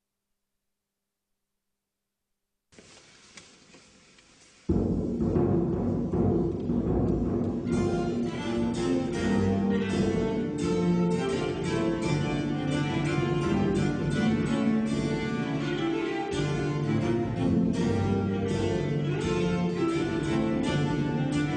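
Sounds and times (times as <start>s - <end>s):
Baroque Ukrainian dance music: 4.7s - 21.5s.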